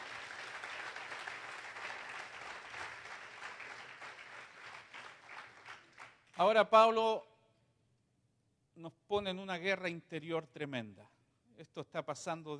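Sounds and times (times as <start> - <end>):
audience applauding: 0.0 - 6.2
speech: 6.4 - 7.3, 8.8 - 12.5.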